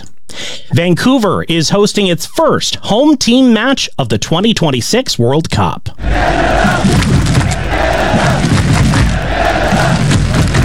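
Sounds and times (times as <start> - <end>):
speech: 0.7 - 7.0
Canadian football fans chanting while gathering to march to BC Place: 6.0 - 10.6
low thuds: 6.0 - 10.6.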